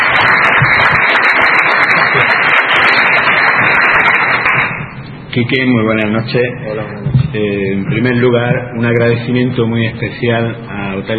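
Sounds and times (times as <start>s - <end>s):
audience applause: 0.0s - 4.8s
speech: 5.3s - 11.1s.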